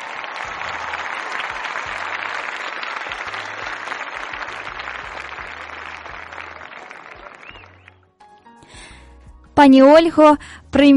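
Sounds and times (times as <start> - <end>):
crowd applauding: 0.0 - 8.1
speech: 9.6 - 10.9.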